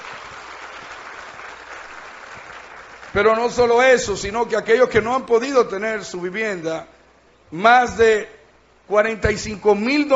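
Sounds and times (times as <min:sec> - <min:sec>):
crowd clapping: 0:00.0 - 0:03.8
speech: 0:03.1 - 0:10.1.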